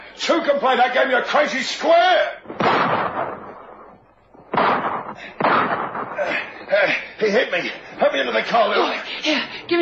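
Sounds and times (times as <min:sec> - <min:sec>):
speech: 0:00.3 - 0:02.4, 0:07.2 - 0:09.7
pistol gunshots: 0:02.4 - 0:06.5.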